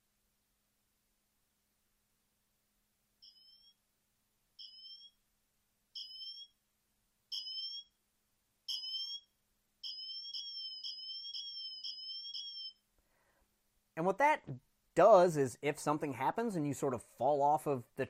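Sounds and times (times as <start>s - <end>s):
smartwatch emergency siren: 7.3s - 7.9s, 8.7s - 12.8s
speech: 14.0s - 18.0s.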